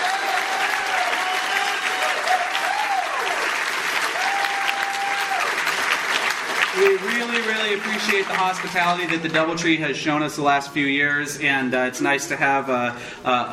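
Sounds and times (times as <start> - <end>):
audience applause: 0.0 - 9.6
speech: 6.8 - 13.5.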